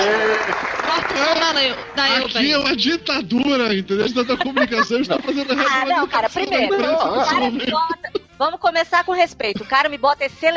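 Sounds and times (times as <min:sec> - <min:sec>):
applause: 0:00.0 - 0:02.0
speech: 0:00.5 - 0:10.5
laughter: 0:03.9 - 0:08.3.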